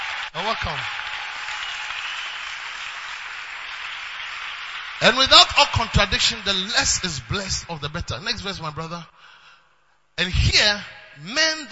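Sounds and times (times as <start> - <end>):
audience applause: 0.0 - 7.8
speech: 0.4 - 1.0, 5.0 - 9.3, 10.2 - 11.7.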